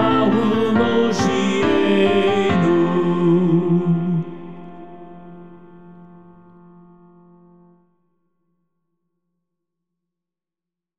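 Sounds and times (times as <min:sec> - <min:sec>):
hymn: 0:00.0 - 0:06.4.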